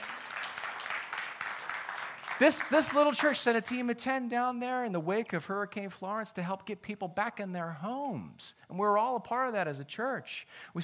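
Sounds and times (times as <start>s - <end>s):
audience applause: 0.0s - 3.5s
speech: 2.4s - 10.8s.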